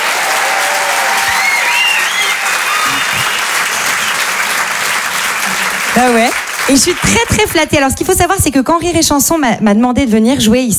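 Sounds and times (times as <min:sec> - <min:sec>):
faint whoops and cheers: 0:00.0 - 0:04.4
audience applause: 0:00.0 - 0:07.9
speech: 0:06.0 - 0:10.7.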